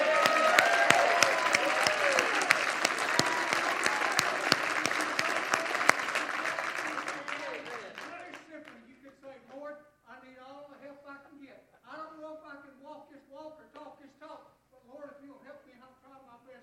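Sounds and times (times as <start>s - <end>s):
audience clapping: 0.0s - 9.6s.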